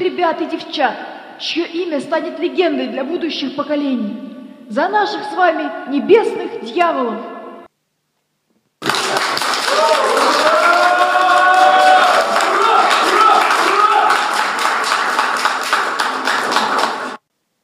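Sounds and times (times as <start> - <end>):
speech: 0.0 - 7.3
crowd cheering enthusiastically: 8.8 - 17.2
scattered clapping: 8.8 - 17.2.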